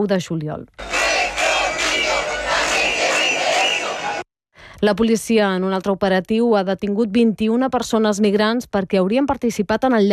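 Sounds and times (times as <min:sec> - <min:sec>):
speech: 0:00.0 - 0:00.9, 0:04.8 - 0:10.1
large street protest crowd shouting: 0:00.8 - 0:04.2.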